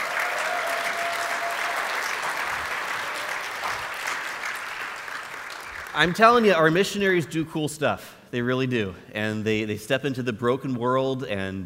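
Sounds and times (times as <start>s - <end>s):
audience applause: 0.0s - 6.5s
speech: 6.0s - 11.6s.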